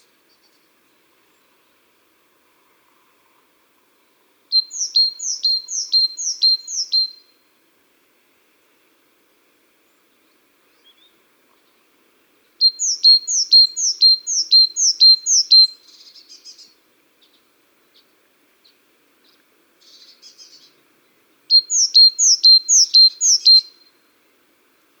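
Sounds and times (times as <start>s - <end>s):
great tit singing: 4.6s - 7.2s, 12.6s - 16.8s, 21.5s - 23.8s.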